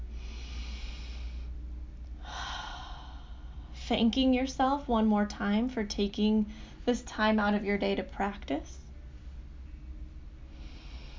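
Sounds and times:
deep breath during a guided meditation: 0.0 - 1.6, 2.2 - 3.8, 6.5 - 6.8, 10.4 - 11.1
low steady hum: 0.0 - 11.1
speech: 3.9 - 8.8.

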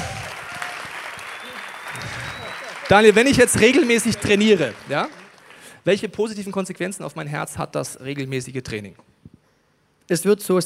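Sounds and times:
audience applause: 0.0 - 5.7
speech: 2.9 - 5.2, 5.8 - 9.1, 10.1 - 10.6.

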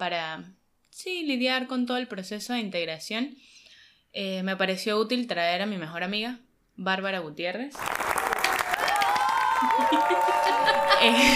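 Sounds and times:
speech: 0.0 - 8.0, 9.6 - 11.3
crowd applause: 7.8 - 11.3
rising high-pitched cheers: 7.8 - 11.3
voices calling out and whooping: 8.7 - 11.3
laughter: 8.9 - 11.3.

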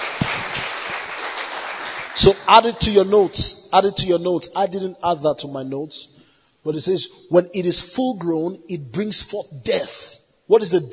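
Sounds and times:
audience clapping: 0.0 - 3.1
speech: 2.2 - 10.9.

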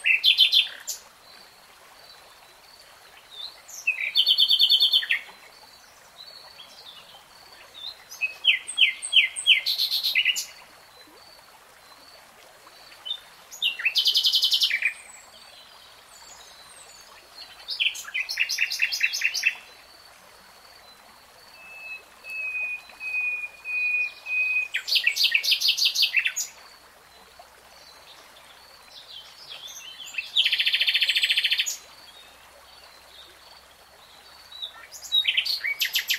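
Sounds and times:
nightingale song: 0.0 - 1.5, 3.1 - 10.8, 12.9 - 19.9, 20.8 - 26.6, 27.8 - 33.6, 34.2 - 36.1.

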